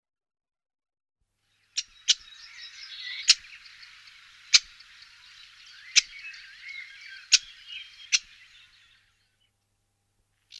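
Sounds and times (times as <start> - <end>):
sedge warbler singing: 1.5 - 9.6.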